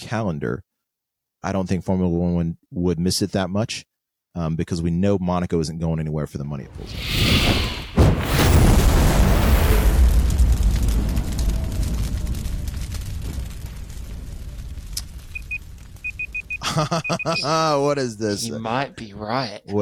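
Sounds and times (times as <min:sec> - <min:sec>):
speech: 0:00.1 - 0:00.7, 0:01.4 - 0:07.7, 0:16.8 - 0:19.7
explosion sound effect from soundboard: 0:06.7 - 0:17.8
laughter: 0:16.6 - 0:18.5.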